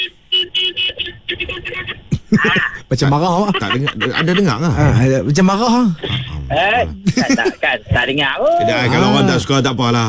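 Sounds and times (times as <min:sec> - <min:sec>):
car horn honking: 0:00.0 - 0:02.1
laughter: 0:02.1 - 0:05.2, 0:05.9 - 0:08.0
speech: 0:02.4 - 0:10.0.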